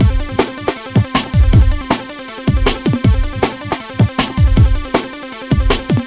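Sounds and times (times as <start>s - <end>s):
hardcore breakbeat in A minor: 0.0s - 6.0s.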